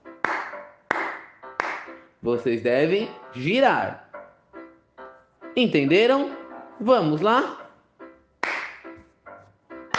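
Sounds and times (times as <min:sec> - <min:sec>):
hand claps: 0:00.1 - 0:02.0, 0:08.4 - 0:09.0
speech: 0:02.2 - 0:04.0, 0:05.6 - 0:07.6.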